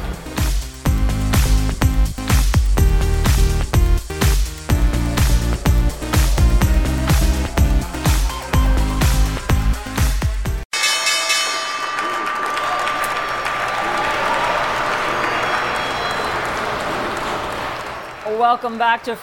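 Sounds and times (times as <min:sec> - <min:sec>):
loud musical theme: 0:00.9 - 0:14.9
crowd applause and cheering: 0:03.0 - 0:10.6, 0:11.3 - 0:19.2
stock exchange opening bell ringing: 0:04.6 - 0:16.5
speech: 0:18.5 - 0:19.2.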